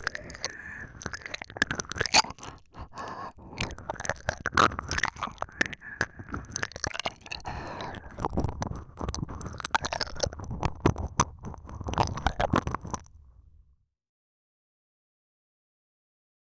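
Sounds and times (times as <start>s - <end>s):
ASMR ear licking sounds: 0.0s - 13.2s.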